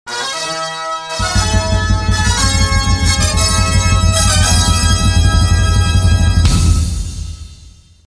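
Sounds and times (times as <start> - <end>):
fanfare: 0.1 - 7.8.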